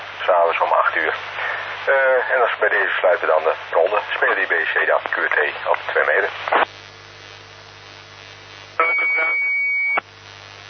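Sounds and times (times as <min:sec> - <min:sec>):
steady radio hiss: 0:00.0 - 0:10.6
speech: 0:00.3 - 0:06.8
garbled voice-like sounds on amateur radio transmission: 0:01.9 - 0:06.6, 0:08.8 - 0:09.4
steady high-pitched beep on amateur radio transmission: 0:08.8 - 0:10.0.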